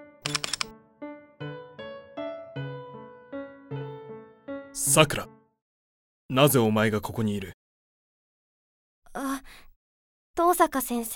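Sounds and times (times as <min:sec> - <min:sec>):
camera shutter firing for a commemorative photo: 0:00.3 - 0:00.7
speech: 0:04.8 - 0:05.3, 0:06.3 - 0:07.6, 0:10.4 - 0:11.1.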